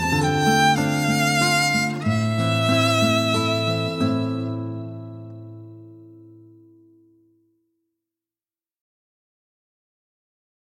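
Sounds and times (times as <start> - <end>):
instrumental music: 0.0 - 7.4.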